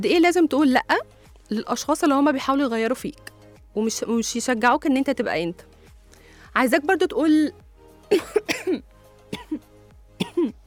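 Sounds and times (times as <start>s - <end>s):
speech: 0.0s - 5.7s, 6.5s - 8.9s, 10.4s - 10.6s
person with a persistent cough coughing: 8.1s - 8.8s, 9.4s - 9.6s, 10.2s - 10.6s.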